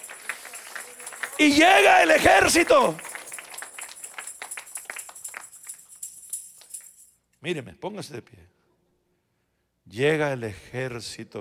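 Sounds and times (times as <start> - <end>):
audience applauding: 0.0 - 6.0
speech: 1.4 - 3.1, 7.4 - 8.6, 9.9 - 11.4.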